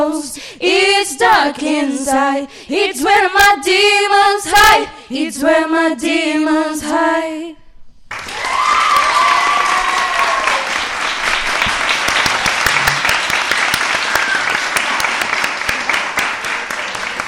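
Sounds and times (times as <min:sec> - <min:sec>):
speech: 0:00.0 - 0:07.6
audience applause: 0:08.1 - 0:17.2.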